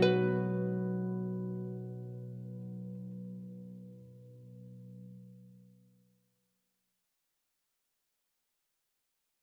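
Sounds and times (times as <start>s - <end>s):
instrumental music: 0.0s - 5.8s.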